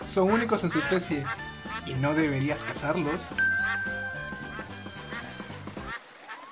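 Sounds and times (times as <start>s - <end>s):
ducks quacking: 0.0s - 3.8s, 4.4s - 6.5s
speech: 0.2s - 4.0s
steady high tone: 3.4s - 4.9s.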